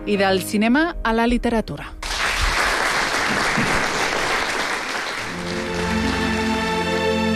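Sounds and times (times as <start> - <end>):
speech: 0.1 - 2.0
audience applause at book presentation: 2.0 - 7.2.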